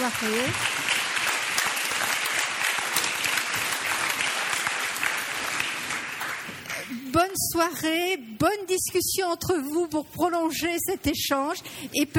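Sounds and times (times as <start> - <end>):
audience applause: 0.0 - 7.0
speech: 0.1 - 0.8, 7.1 - 12.1.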